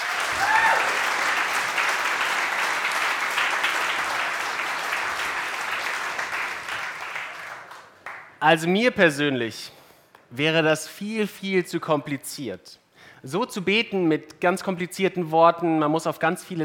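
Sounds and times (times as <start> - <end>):
audience applause: 0.0 - 8.3
speech: 8.4 - 16.6.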